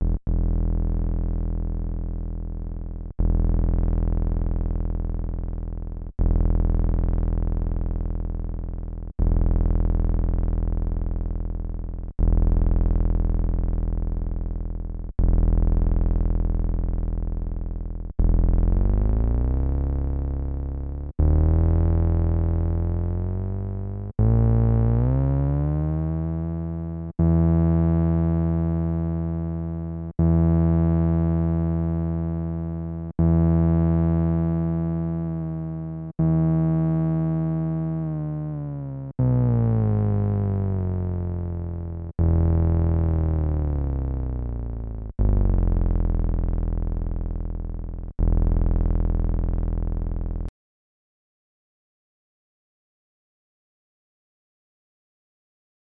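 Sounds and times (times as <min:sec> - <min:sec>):
Korg Nubass SQR pitch sub bass saturated: 0:00.0 - 0:50.5.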